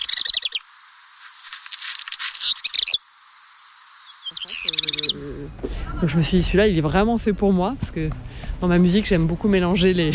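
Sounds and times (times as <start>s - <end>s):
black redstart singing: 0.0s - 0.6s, 2.0s - 3.0s, 4.0s - 5.6s
speech: 4.5s - 10.1s.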